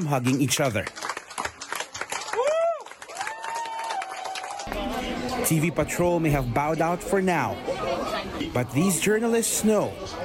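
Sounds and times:
speech: 0:00.0 - 0:01.1, 0:04.7 - 0:10.2
applause in a newsroom: 0:00.0 - 0:05.0.

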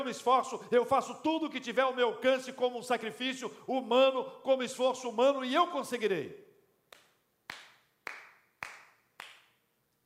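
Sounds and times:
speech: 0:00.0 - 0:06.5
slow hand claps: 0:06.9 - 0:09.6.

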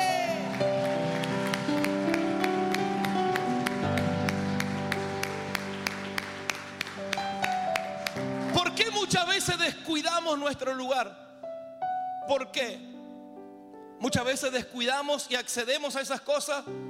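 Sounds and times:
audience applause: 0:00.0 - 0:09.1
speech: 0:09.1 - 0:11.2, 0:12.3 - 0:12.9, 0:14.0 - 0:16.8.

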